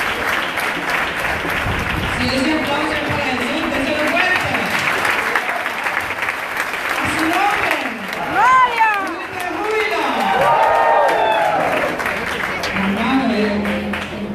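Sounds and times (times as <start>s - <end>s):
audience applauding: 0.0s - 14.2s.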